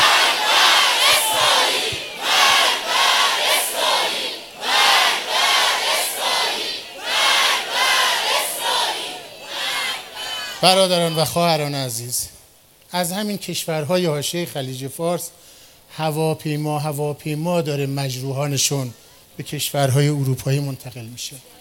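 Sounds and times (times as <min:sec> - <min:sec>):
large crowd chanting a slogan against Israel in unison: 0:00.0 - 0:11.2
speech: 0:10.6 - 0:21.6.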